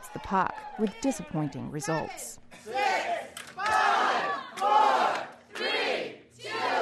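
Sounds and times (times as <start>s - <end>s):
crowd shouting a countdown: 0.0s - 6.8s
speech: 0.1s - 2.8s.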